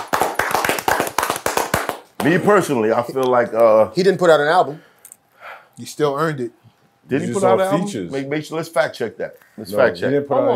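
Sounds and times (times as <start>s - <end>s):
audience clapping: 0.0s - 2.6s
speech: 2.2s - 4.9s, 5.8s - 10.5s.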